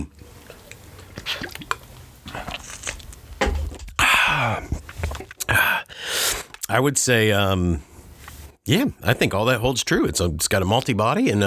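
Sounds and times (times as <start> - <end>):
person sipping and slurping pale ale: 0.2 - 3.3, 4.0 - 6.7
speech: 6.7 - 7.9, 8.7 - 11.4.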